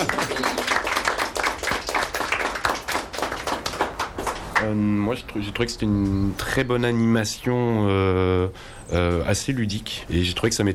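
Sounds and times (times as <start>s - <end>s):
audience applause: 0.0s - 4.7s
speech: 4.6s - 10.7s.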